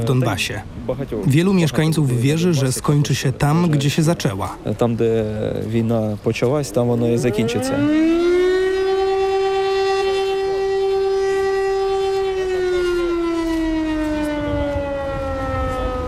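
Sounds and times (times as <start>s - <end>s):
speech: 0.0s - 8.2s
air raid siren: 7.0s - 16.0s.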